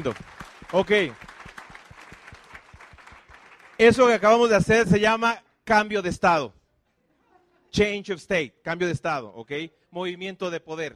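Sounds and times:
speech: 0.0 - 1.2, 3.8 - 6.6, 7.7 - 10.9
audience applause: 0.0 - 4.2.

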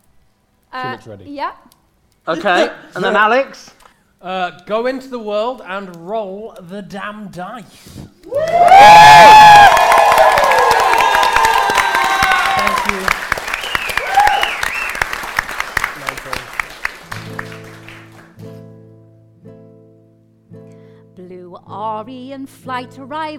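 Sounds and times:
speech: 0.7 - 9.4, 22.0 - 23.3
audience cheering: 8.3 - 18.1
applause: 8.4 - 18.4.

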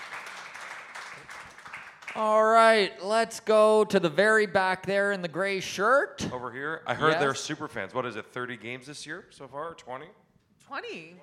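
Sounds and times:
crowd applauding: 0.0 - 2.8
speech: 2.2 - 11.2.

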